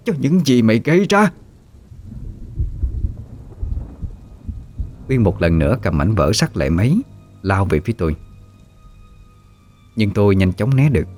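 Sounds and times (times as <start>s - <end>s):
speech: 0.0s - 1.4s, 5.1s - 8.2s, 10.0s - 11.1s
rain: 0.0s - 11.1s
rumbling thunder: 1.3s - 9.1s.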